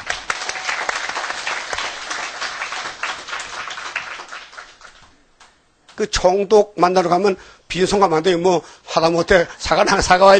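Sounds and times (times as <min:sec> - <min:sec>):
audience applause: 0:00.0 - 0:05.1
speech: 0:06.0 - 0:10.3.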